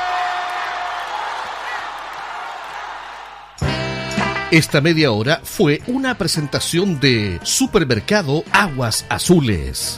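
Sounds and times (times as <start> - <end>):
audience applause: 0.0 - 3.6
speech: 4.5 - 9.9.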